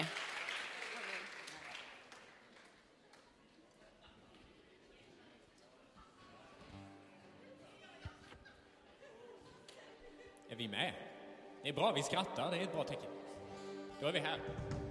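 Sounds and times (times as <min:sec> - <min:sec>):
children applauding: 0:00.0 - 0:02.9
laughter: 0:07.2 - 0:10.5
speech: 0:10.5 - 0:13.4, 0:14.0 - 0:14.8.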